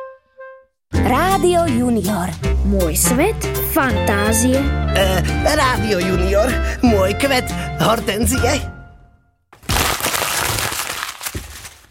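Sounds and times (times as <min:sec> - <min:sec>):
speech: 0:01.1 - 0:08.8
crumpling paper: 0:09.6 - 0:11.8.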